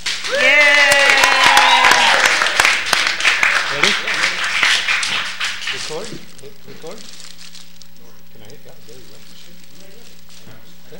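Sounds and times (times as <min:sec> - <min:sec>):
clapping: 0:00.0 - 0:06.2.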